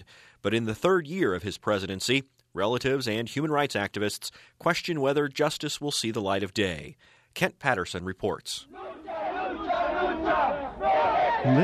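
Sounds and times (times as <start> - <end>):
speech: 0.0 - 9.1, 11.4 - 11.6
crowd chanting political slogans in a street procession in Atoyac de Álvarez: 8.7 - 11.6.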